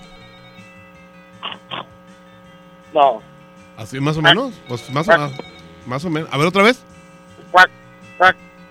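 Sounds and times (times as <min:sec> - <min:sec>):
faint steady hum: 0:00.0 - 0:08.6
voice imitating a frog croak: 0:01.4 - 0:01.9
speech: 0:02.9 - 0:06.9, 0:07.5 - 0:08.4.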